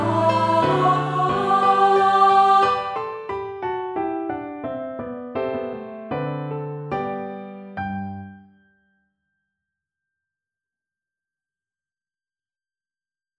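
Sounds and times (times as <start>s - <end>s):
solo voice singing in G major: 0.0s - 3.0s
piano in G major: 0.0s - 9.0s.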